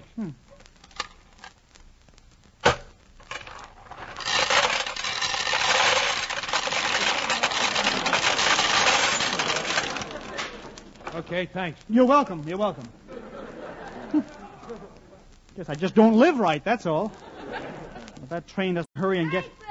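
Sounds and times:
speech: 0:00.2 - 0:00.5, 0:11.4 - 0:13.0, 0:15.6 - 0:17.6, 0:18.3 - 0:19.6
coins dropping into a peanut vending machine: 0:03.3 - 0:11.2
laughter: 0:07.0 - 0:11.3, 0:12.7 - 0:15.3, 0:17.0 - 0:18.4.

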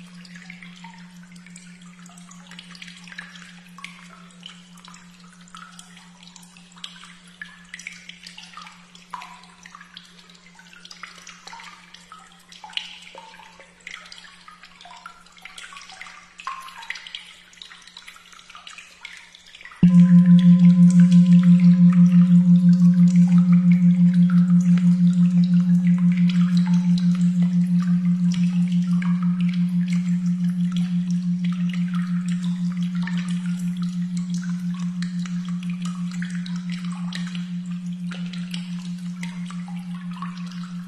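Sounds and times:
241.56 Hz tone: 0:19.8 - 0:40.8.

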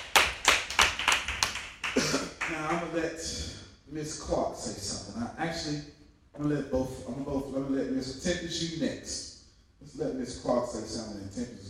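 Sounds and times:
audience clapping: 0:00.0 - 0:02.9
speech: 0:02.5 - 0:11.6.

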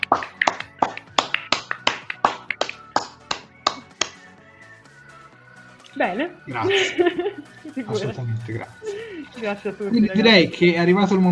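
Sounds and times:
applause: 0:00.0 - 0:04.1
speech: 0:06.0 - 0:11.3
laughter: 0:06.5 - 0:09.4.

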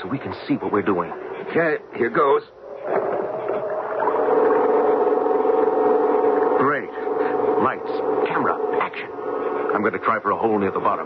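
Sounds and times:
speech: 0:00.1 - 0:03.0, 0:09.8 - 0:11.0
pull-start generator small gas engine droning: 0:02.7 - 0:11.0.

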